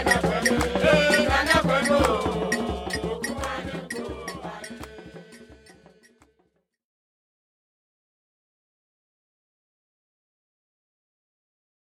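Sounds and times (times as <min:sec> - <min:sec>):
Ghanaian polyrhythmic ensemble: 0:00.0 - 0:06.4.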